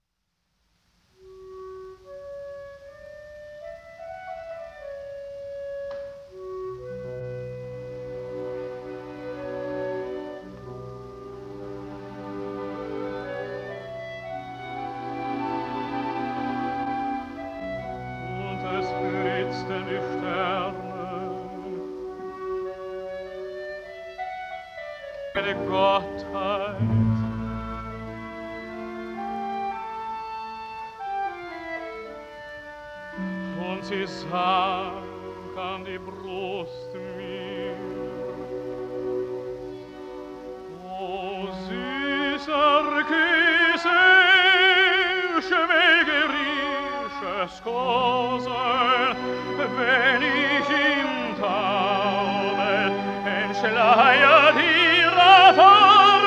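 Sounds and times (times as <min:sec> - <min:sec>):
person singing in German: 0:12.2 - 0:22.1, 0:25.3 - 0:29.8, 0:33.1 - 0:38.6, 0:40.7 - 0:56.2.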